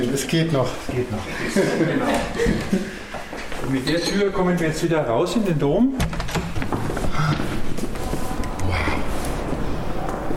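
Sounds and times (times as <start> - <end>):
speech: 0.2 - 3.0, 3.6 - 6.2
laughter: 1.2 - 3.3
footsteps echoing in a cathedral: 2.1 - 3.8, 6.2 - 10.3.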